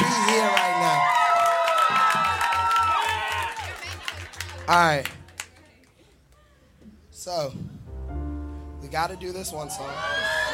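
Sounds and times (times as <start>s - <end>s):
crowd cheering and applauding: 0.0s - 5.6s, 9.1s - 10.5s
speech: 4.7s - 5.2s, 7.2s - 7.8s, 8.9s - 10.5s.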